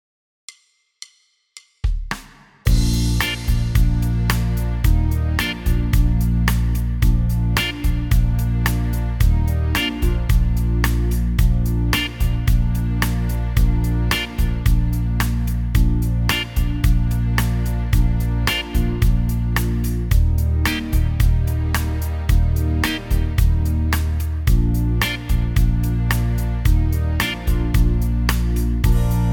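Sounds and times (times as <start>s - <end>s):
boy band ballad in B flat: 2.7s - 29.3s.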